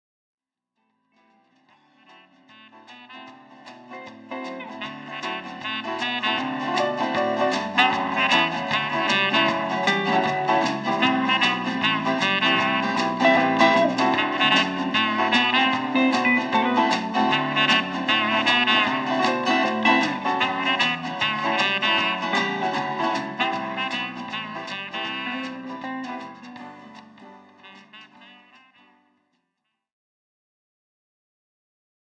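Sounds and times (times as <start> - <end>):
instrumental jingle: 4.6 - 25.6.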